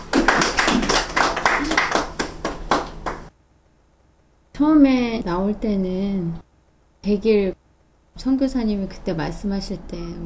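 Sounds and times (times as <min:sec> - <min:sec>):
audience clapping: 0:00.0 - 0:03.3
speech: 0:04.6 - 0:06.4, 0:07.0 - 0:07.6, 0:08.2 - 0:10.2.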